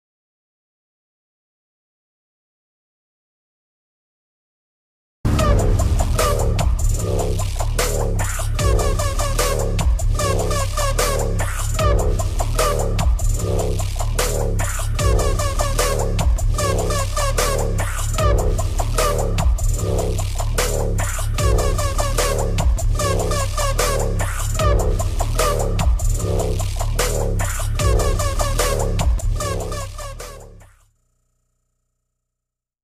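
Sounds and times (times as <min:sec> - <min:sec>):
theme background music mix: 0:05.3 - 0:30.6.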